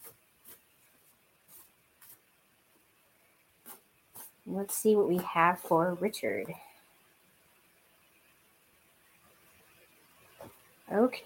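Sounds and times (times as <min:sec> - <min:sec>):
tarot cards shuffling: 0:00.0 - 0:02.2
speech: 0:04.5 - 0:06.7, 0:11.0 - 0:11.2.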